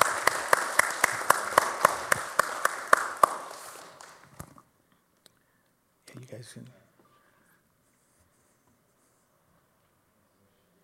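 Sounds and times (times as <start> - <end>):
applause: 0.0 - 4.4
speech: 6.4 - 6.8.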